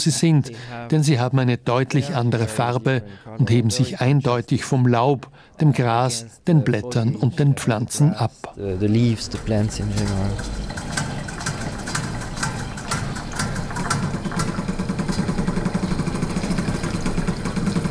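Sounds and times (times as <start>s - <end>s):
speech: 0.0s - 10.9s
sound machines drumming on water-filled metal basins: 8.6s - 17.8s.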